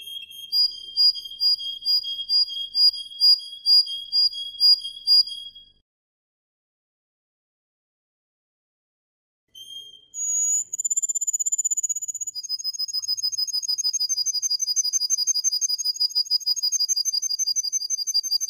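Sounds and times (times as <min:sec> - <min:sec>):
Atlantic canary singing with rolling trills and whistled notes: 0:00.0 - 0:05.8, 0:09.5 - 0:18.4.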